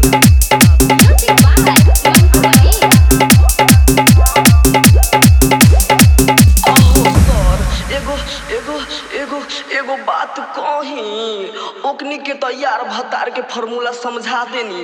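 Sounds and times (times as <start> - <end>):
hard dholak bass remix: 0.0 - 9.6.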